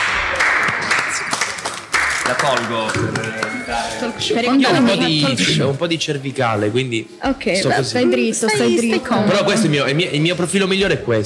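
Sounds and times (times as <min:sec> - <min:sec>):
applause: 0:00.0 - 0:03.8
speech: 0:02.3 - 0:11.2.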